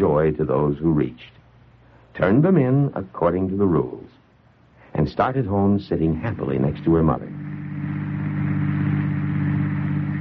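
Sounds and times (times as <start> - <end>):
speech: 0.0 - 1.4, 2.2 - 4.2, 4.9 - 8.0
car driving: 6.2 - 10.1.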